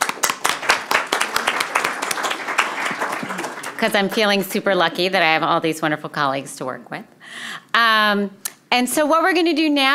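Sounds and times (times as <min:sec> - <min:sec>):
applause: 0:00.0 - 0:04.3
speech: 0:03.8 - 0:09.9.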